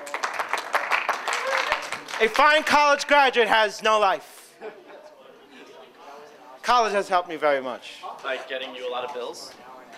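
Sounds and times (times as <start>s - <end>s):
round of applause: 0.0s - 2.8s
speech: 2.2s - 4.3s, 6.7s - 9.7s.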